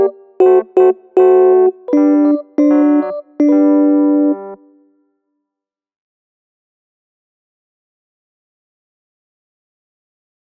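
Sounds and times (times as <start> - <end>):
midi alto tone: 0.0 - 4.7.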